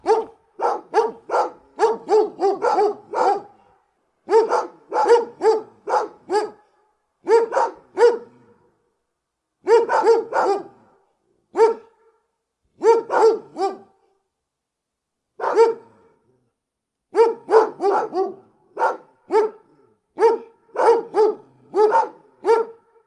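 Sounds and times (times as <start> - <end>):
big dogs barking: 0.0 - 3.7, 4.3 - 6.6, 7.3 - 8.4, 9.7 - 10.9, 11.6 - 12.0, 12.8 - 13.9, 15.4 - 15.9, 17.2 - 22.9.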